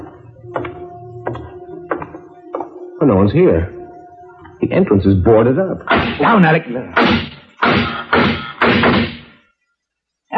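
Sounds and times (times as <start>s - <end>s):
speech: 3.0s - 3.8s, 4.6s - 9.0s
gunshots fired from across the street: 5.9s - 9.3s.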